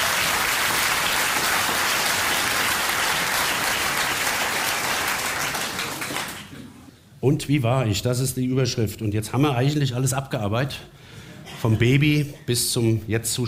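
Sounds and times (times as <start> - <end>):
audience clapping: 0.0 - 6.7
speech: 7.2 - 11.0, 11.6 - 13.4.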